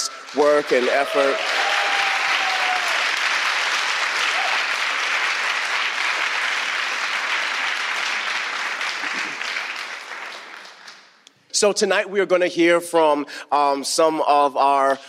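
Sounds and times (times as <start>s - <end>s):
audience applause: 0.0s - 11.2s
speech: 0.3s - 1.5s, 11.6s - 15.0s.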